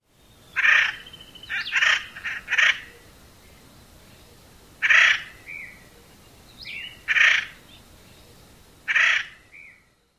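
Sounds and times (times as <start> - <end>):
Acorn Woodpecker calls: 0.5 - 3.1, 4.8 - 7.6, 8.9 - 9.8.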